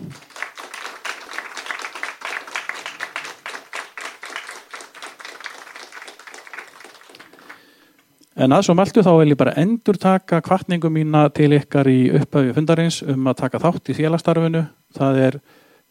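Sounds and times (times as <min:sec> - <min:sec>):
audience clapping in thanks at an Icelandic association meeting: 0:00.0 - 0:07.9
speech: 0:08.4 - 0:15.6.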